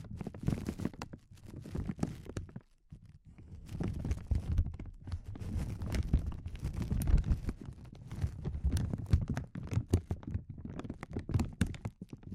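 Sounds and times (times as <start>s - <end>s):
crinkling and crackling: 0.0s - 12.3s.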